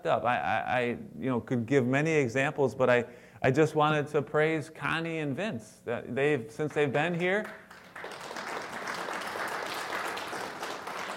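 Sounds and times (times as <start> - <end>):
speech: 0.0 - 8.2
audience applause: 7.7 - 11.1.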